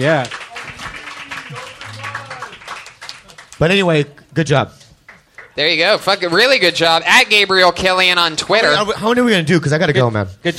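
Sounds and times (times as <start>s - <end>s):
speech: 0.0s - 0.4s, 3.6s - 4.8s, 5.6s - 10.5s
audience clapping at the Comedy Store: 0.0s - 3.9s, 5.0s - 7.3s.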